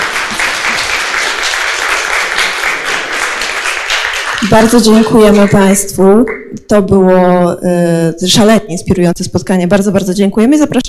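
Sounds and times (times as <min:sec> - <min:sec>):
audience applause: 0:00.0 - 0:05.6
speech: 0:04.5 - 0:10.8.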